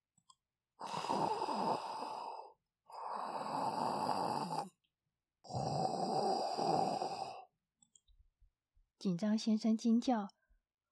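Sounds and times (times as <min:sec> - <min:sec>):
sleeping man snoring loudly in grass: 0:00.8 - 0:04.7, 0:05.4 - 0:07.5
speech: 0:09.0 - 0:10.4.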